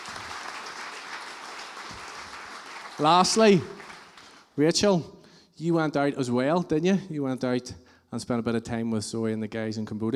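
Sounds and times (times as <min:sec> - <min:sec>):
audience applause: 0:00.0 - 0:04.4
speech: 0:03.0 - 0:03.8, 0:04.6 - 0:10.1.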